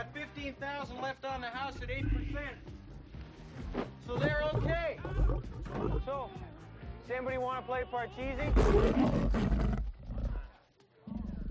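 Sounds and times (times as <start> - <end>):
speech: 0.0 - 2.8, 3.6 - 6.5, 7.1 - 9.7
dog growling: 1.8 - 2.4, 4.2 - 6.1, 8.4 - 10.5.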